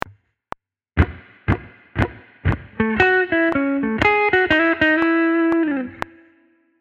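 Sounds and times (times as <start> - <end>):
blues music: 1.0 - 6.4.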